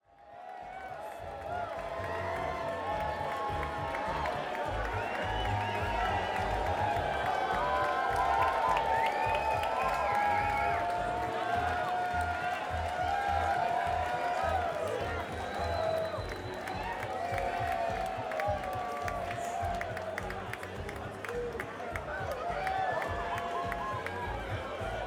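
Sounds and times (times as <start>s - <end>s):
crowd: 0.0s - 25.0s.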